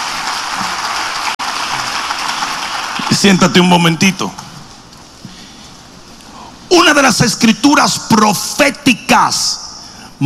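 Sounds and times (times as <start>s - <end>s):
audience applause: 0.0s - 3.4s
speech: 3.2s - 4.4s, 7.2s - 9.6s.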